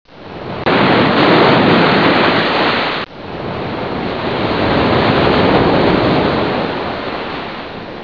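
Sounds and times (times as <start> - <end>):
water: 0.1 - 8.0.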